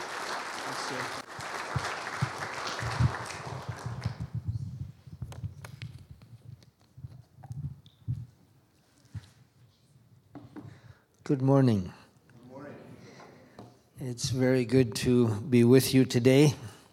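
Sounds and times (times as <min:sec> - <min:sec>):
church congregation clapping to welcome a speaker: 0:00.0 - 0:04.4
speech: 0:00.9 - 0:01.9, 0:11.3 - 0:12.0, 0:14.0 - 0:16.7.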